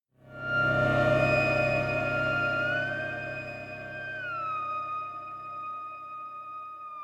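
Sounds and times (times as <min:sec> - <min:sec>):
death music: 0:00.3 - 0:05.7.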